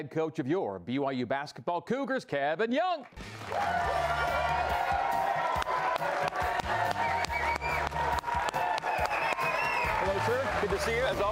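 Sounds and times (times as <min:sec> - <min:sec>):
speech: 0:00.0 - 0:05.2, 0:10.7 - 0:11.3
studio audience rhythmic clapping: 0:03.0 - 0:11.3
studio audience cheering in Studio C: 0:03.3 - 0:11.3.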